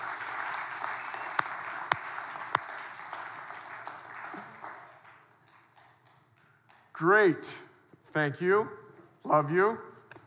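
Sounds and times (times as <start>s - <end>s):
audience applause: 0.0s - 6.2s
speech: 7.0s - 9.9s.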